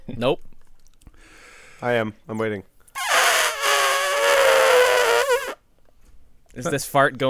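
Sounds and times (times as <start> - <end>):
speech: 0.1 - 0.5, 1.8 - 2.7, 6.6 - 7.2
voice imitating an elephant: 3.0 - 5.6.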